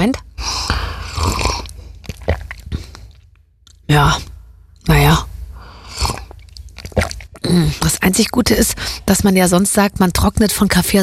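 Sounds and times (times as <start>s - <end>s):
speech: 0.0s - 0.2s, 3.9s - 4.3s, 8.0s - 11.0s
slurping sip of hot coffee mixed with olive oil: 0.4s - 3.4s, 5.7s - 7.5s
wet mouth clicks: 1.2s - 3.8s, 6.0s - 7.5s.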